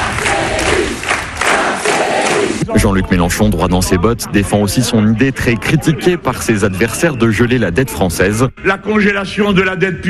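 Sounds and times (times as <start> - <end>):
dense crowd of political rally supporters roaring and chanting: 0.0 - 2.8
speech: 2.8 - 10.0.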